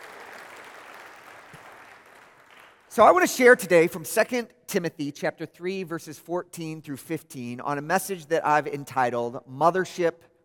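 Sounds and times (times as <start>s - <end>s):
crowd applauding: 0.0s - 2.9s
speech: 2.9s - 10.3s.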